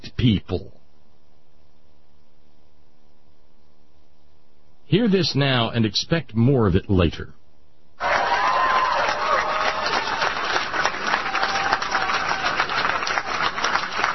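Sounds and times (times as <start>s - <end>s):
speech: 0.2s - 0.8s, 4.9s - 7.4s
crowd applauding: 8.0s - 14.1s.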